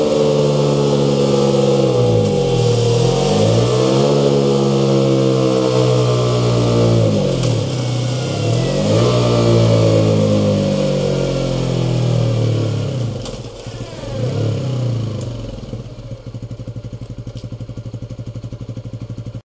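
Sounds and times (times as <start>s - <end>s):
Honda CBR 125 motorcycle engine: 0.0s - 19.4s.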